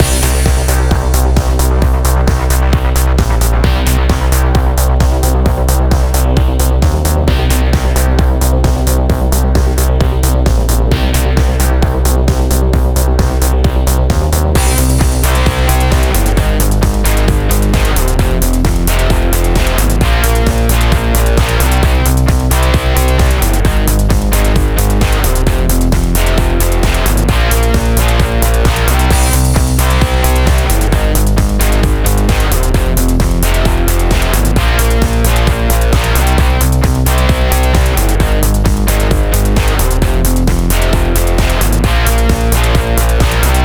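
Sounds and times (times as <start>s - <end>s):
music: 0.0s - 43.6s.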